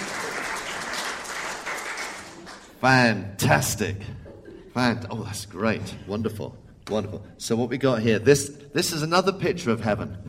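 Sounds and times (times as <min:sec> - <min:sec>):
audience applause: 0:00.0 - 0:02.8
speech: 0:02.8 - 0:04.2, 0:04.8 - 0:10.2.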